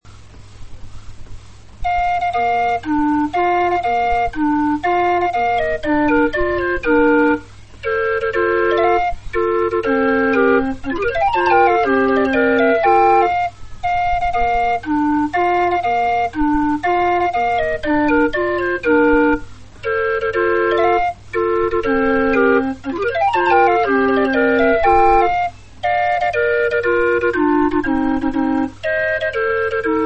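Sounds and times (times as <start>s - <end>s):
flute clock playing: 1.8s - 30.0s.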